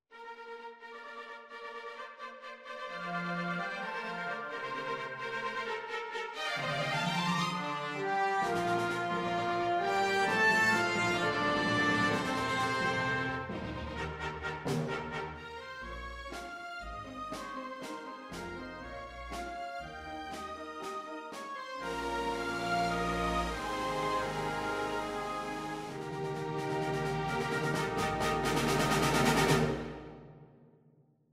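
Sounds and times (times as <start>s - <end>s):
fanfare: 2.5s - 30.2s.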